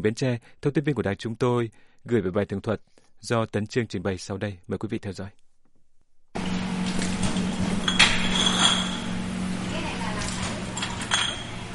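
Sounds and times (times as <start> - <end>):
speech: 0.0 - 5.4
glass rice liquor bottles clinking while labeled in a factory: 6.9 - 9.3, 10.2 - 11.7.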